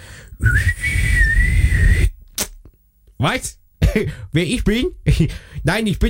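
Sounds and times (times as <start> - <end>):
wavering answering machine whistle tone: 0.1 - 2.2
speech: 3.2 - 6.0.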